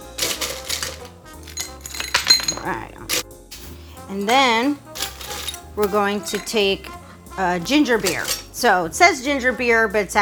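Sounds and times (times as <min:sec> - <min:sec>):
ice cubes poured into a glass: 0:00.0 - 0:03.2, 0:04.2 - 0:07.0, 0:07.9 - 0:08.6
speech: 0:02.6 - 0:03.1, 0:04.1 - 0:04.9, 0:05.8 - 0:10.2.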